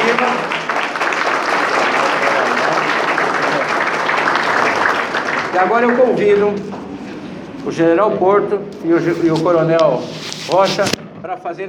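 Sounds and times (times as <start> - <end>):
audience applause: 0.0 - 6.3
speech: 5.6 - 6.9, 7.6 - 11.6.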